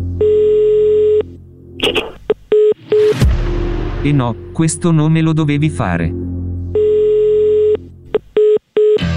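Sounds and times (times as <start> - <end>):
telephone being dialed: 0.2 - 3.1, 6.7 - 9.0
speech: 4.1 - 6.2.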